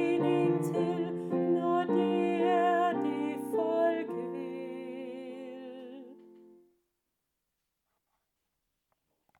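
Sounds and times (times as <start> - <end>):
alto voice singing: 0.0 - 6.5.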